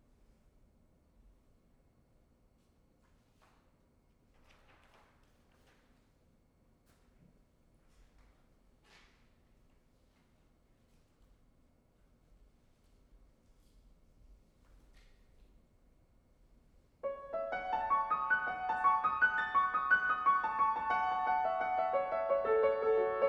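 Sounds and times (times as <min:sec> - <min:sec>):
piano: 0:16.9 - 0:23.2.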